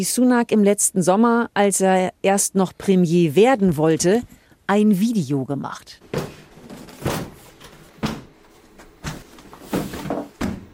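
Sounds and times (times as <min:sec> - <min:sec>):
speech: 0:00.0 - 0:06.3
large paper stacks slammed onto a table: 0:06.1 - 0:10.7.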